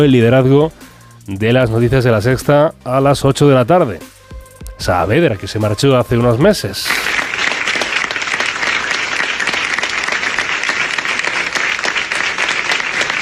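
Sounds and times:
speech: 0.0 - 4.1, 4.8 - 7.1
applause in the La Sexta Noticias newsroom: 6.9 - 13.2.

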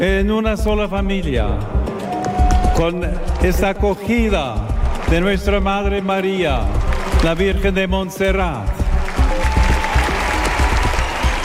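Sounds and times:
speech: 0.0 - 2.1, 2.8 - 8.8
crowd applauding Pope Leo XIV at Montserrat Abbey: 1.8 - 7.9, 8.8 - 11.4.

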